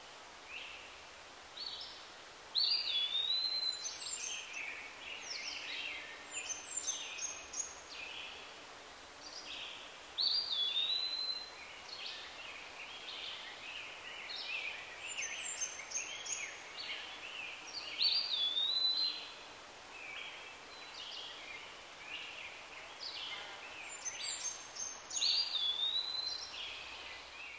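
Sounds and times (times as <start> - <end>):
forest background ambience: 0.0 - 27.5.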